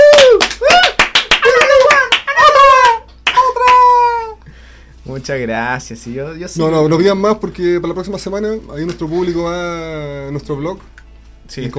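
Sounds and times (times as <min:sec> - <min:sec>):
audience clapping: 0:00.0 - 0:03.9
speech: 0:05.3 - 0:11.7.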